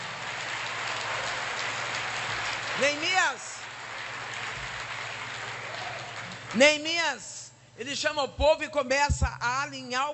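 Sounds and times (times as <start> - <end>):
audience applauding: 0.0 - 6.6
speech: 2.8 - 3.6, 6.5 - 10.1.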